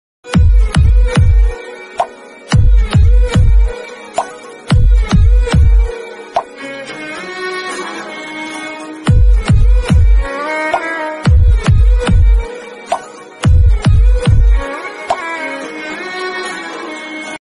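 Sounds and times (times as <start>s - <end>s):
heartbeat background music ringtone: 0.3s - 6.5s, 9.1s - 15.4s.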